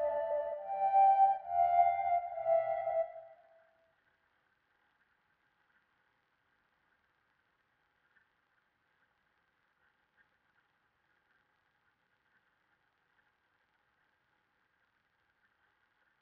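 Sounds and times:
145 BPM D minor counter lead synth melody loop: 0.0s - 3.5s.

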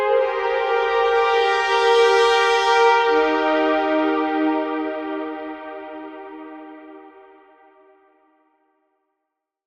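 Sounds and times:
brass stem in F minor at 80 BPM: 0.1s - 7.2s.

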